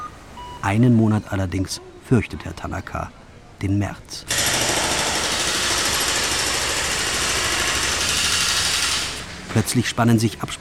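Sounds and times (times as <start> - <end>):
speech: 0.6 - 4.4, 9.5 - 10.5
jackhammer: 4.3 - 9.3
construction machines roaring: 4.3 - 10.0.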